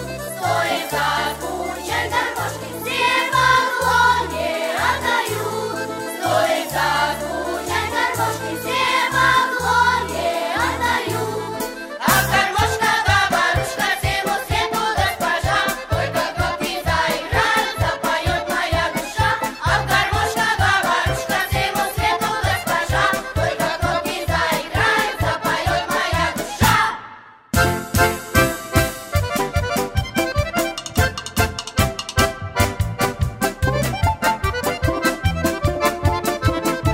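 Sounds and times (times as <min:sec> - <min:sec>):
garmoshka accordion: 0:00.0 - 0:36.9
vocal group singing: 0:00.3 - 0:27.3.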